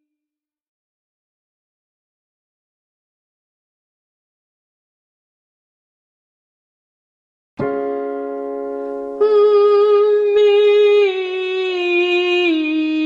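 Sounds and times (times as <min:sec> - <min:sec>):
person humming a descending legato line: 0:09.2 - 0:13.0.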